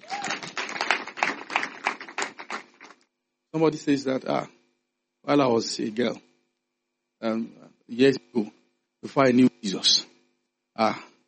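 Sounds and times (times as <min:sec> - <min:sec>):
person clapping hands: 0:00.0 - 0:03.0
speech: 0:03.6 - 0:04.6, 0:05.2 - 0:06.3, 0:07.2 - 0:10.1, 0:10.8 - 0:11.1.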